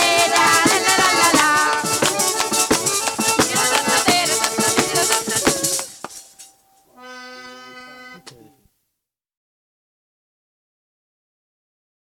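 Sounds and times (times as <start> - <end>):
tarantella dance music: 0.0 - 6.2.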